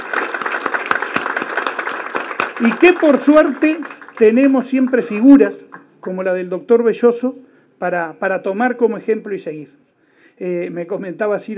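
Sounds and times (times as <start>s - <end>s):
audience applause for health workers: 0.0s - 5.5s
speech: 2.6s - 9.8s, 10.4s - 11.5s.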